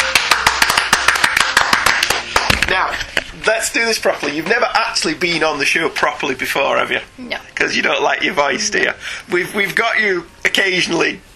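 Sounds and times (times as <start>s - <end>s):
applause: 0.0s - 2.7s
speech: 3.3s - 11.3s.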